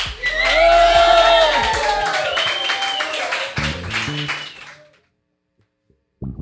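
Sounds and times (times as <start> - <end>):
audience applause and cheering: 0.0 - 5.0.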